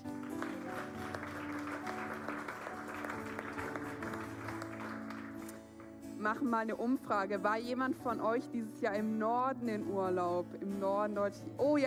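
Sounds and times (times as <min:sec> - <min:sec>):
audience applause: 0:00.0 - 0:05.9
speech: 0:06.2 - 0:11.8.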